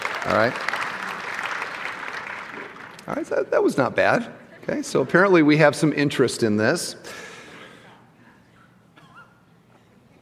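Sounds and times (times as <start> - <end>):
audience clapping: 0.0 - 3.6
speech: 0.2 - 0.8, 3.1 - 7.2.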